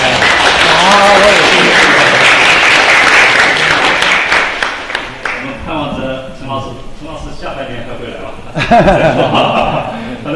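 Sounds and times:
audience applause: 0.0 - 5.5
laughter: 8.5 - 10.3
speech: 8.7 - 9.6.

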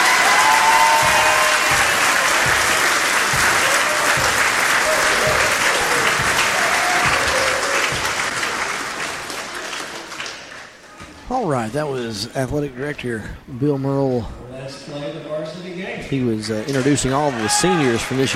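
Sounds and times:
scattered cheers: 0.0 - 8.5, 17.1 - 18.3
audience applause for graduating seniors: 0.0 - 10.9, 16.7 - 18.3
speech: 11.6 - 18.3.

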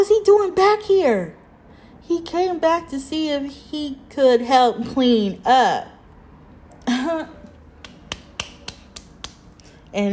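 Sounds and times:
speech: 0.0 - 1.4, 2.0 - 5.9, 7.0 - 7.4, 9.9 - 10.1
hands clapping: 7.8 - 9.5.

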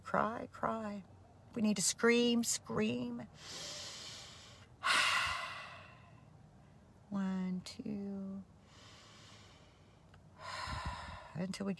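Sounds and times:
speech: 0.1 - 3.9, 7.1 - 8.6, 11.4 - 11.7
slow deep breath with sighing exhale: 3.4 - 6.3, 8.6 - 11.4.

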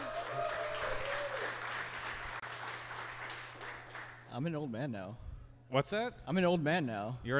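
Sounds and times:
audience cheering and applauding: 0.0 - 4.2
speech: 4.4 - 7.3.

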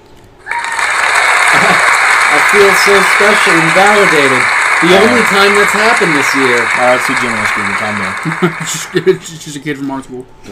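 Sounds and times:
smart speaker clapping sound effect: 0.5 - 9.2
laughter: 1.2 - 9.5
speech: 2.5 - 10.5.

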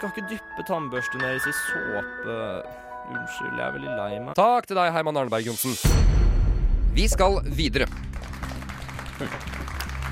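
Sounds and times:
speech: 0.0 - 6.2, 6.9 - 8.2, 9.2 - 9.6
audience applause: 7.5 - 10.1.

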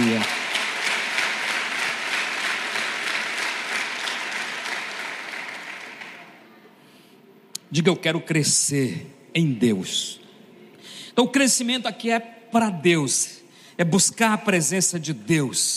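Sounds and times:
audience applause: 0.0 - 6.5
speech: 7.7 - 10.2, 11.2 - 15.7.

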